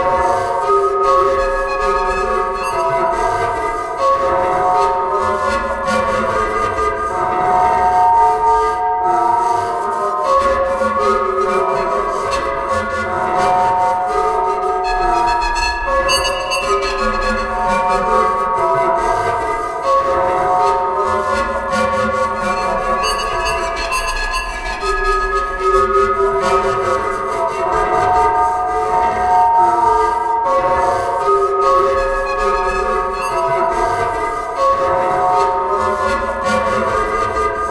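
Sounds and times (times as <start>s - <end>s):
drone: 0.0s - 37.6s.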